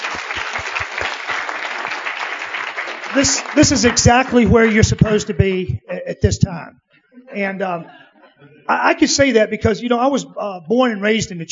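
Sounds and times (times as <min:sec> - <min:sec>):
crowd clapping: 0:00.0 - 0:05.7
speech: 0:03.1 - 0:11.5.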